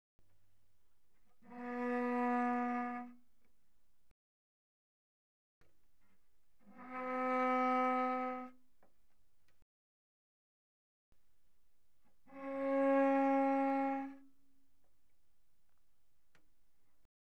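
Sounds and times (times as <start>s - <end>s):
cello bowed pianissimo on the C string: 1.4s - 3.3s, 6.7s - 8.6s, 12.3s - 14.4s.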